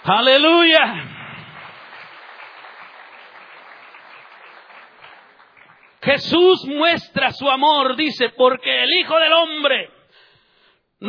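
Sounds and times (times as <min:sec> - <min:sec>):
speech: 0:00.0 - 0:01.1, 0:06.1 - 0:10.0
audience applause: 0:00.8 - 0:06.0.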